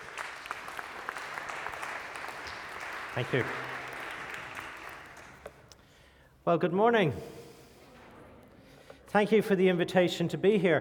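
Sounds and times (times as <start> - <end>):
church congregation applauding a guest speaker: 0.0 - 5.8
speech: 3.2 - 3.7, 6.4 - 7.4, 9.2 - 10.7.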